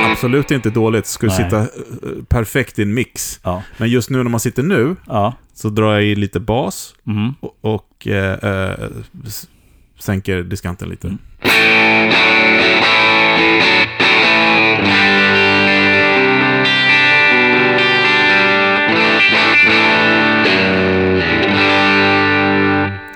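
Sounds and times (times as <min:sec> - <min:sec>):
electric guitar through amp with low-gain crunch strumming chords: 0:00.0 - 0:01.6, 0:11.4 - 0:23.1
speech: 0:00.1 - 0:12.7.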